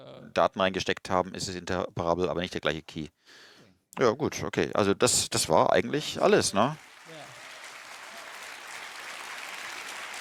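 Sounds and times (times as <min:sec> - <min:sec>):
speech: 0:00.4 - 0:06.9
audience applause in the hall: 0:06.3 - 0:10.1.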